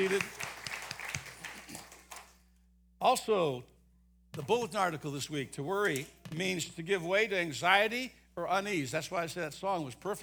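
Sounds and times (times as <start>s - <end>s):
speech: 0.0s - 0.5s, 3.0s - 3.7s, 4.4s - 10.2s
crowd clapping: 0.0s - 2.4s.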